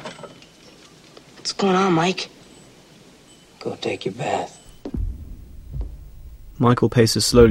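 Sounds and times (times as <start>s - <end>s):
speech: 1.6s - 2.3s, 3.6s - 4.6s, 6.6s - 7.4s
door being shut: 4.7s - 6.6s.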